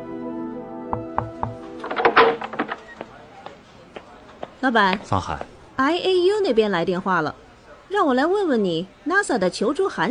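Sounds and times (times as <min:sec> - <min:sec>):
speech: 0:00.9 - 0:01.4, 0:04.6 - 0:10.0
knocks on an office door: 0:00.9 - 0:01.6.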